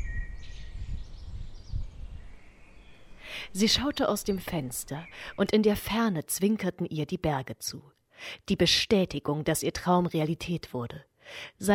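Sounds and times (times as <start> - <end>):
early morning birds twittering: 0.0 - 5.6
speech: 3.5 - 11.7.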